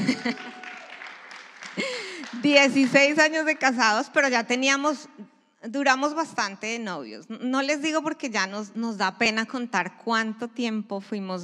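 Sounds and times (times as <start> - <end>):
laughter: 0.0 - 1.0
audience applause: 0.0 - 3.2
speech: 0.2 - 0.6, 1.8 - 11.4.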